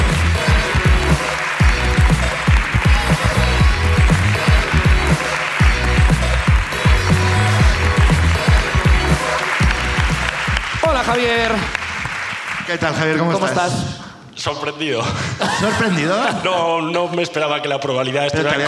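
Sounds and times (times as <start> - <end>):
audience applause: 0.0 - 13.3
speech: 12.7 - 18.6
laughter: 15.2 - 16.5.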